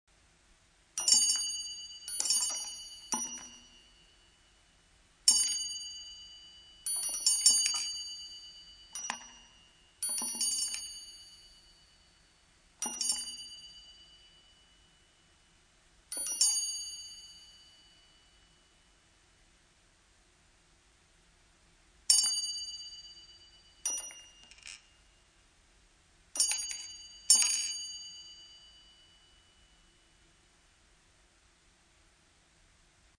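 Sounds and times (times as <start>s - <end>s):
chime: 1.0s - 19.0s, 22.1s - 25.2s, 26.4s - 30.4s.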